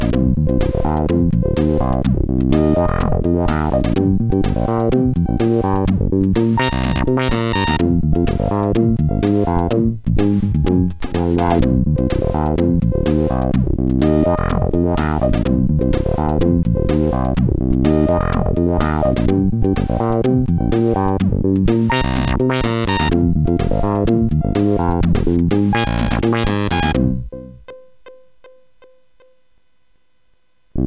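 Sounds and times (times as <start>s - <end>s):
blues bassline on a CSG8580R5 sound chip: 0.0s - 27.8s.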